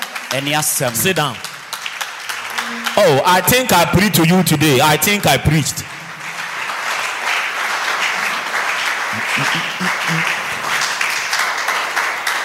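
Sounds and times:
audience clapping: 0.0 - 12.4
speech: 0.3 - 1.5, 3.0 - 5.9, 9.2 - 10.4
laughter: 9.1 - 11.0.

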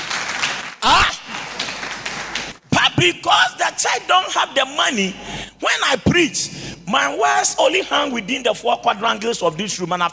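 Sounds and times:
audience clapping: 0.0 - 2.7
person calling out loudly: 0.8 - 1.2
speech: 3.0 - 10.1.

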